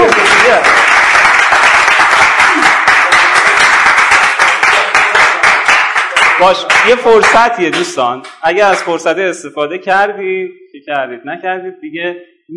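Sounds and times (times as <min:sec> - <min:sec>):
audience applause and clapping: 0:00.0 - 0:08.9
speech: 0:06.4 - 0:12.5.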